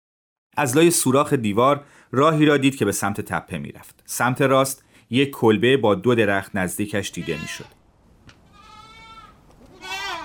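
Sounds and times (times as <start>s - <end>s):
speech: 0.6s - 7.8s
goat bleating: 7.0s - 7.8s, 8.4s - 10.2s.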